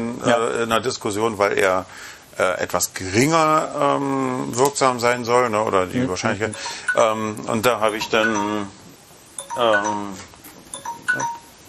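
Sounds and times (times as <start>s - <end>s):
speech: 0.2s - 8.8s, 9.6s - 10.3s, 11.1s - 11.4s
alarm clock ringing: 6.6s - 7.2s, 7.8s - 8.6s, 9.4s - 10.1s, 10.7s - 11.6s.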